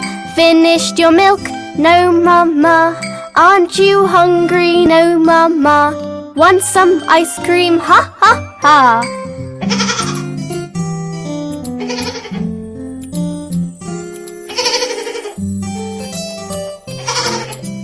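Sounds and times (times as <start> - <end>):
speech: 0.4 - 9.9
goat bleating: 9.6 - 10.3, 11.8 - 12.5, 17.0 - 17.6
sustained low musical tones: 10.0 - 17.8.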